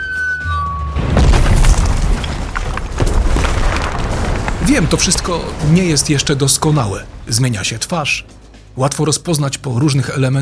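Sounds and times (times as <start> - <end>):
bomb whistling tone sound effect: 0.0 - 1.0
bomb explosion sound effect boom and rumbling roar: 1.0 - 7.9
speech: 4.8 - 10.4.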